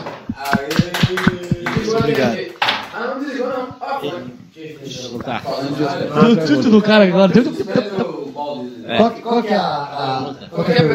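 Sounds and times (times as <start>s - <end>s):
live hands clapping: 0.1s - 2.9s
speech: 4.0s - 7.8s, 8.6s - 10.9s
laughter: 6.0s - 8.2s.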